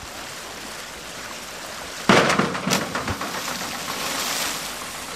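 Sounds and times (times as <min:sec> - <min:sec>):
cannonball jump splashing into pool water: 0:02.0 - 0:05.0.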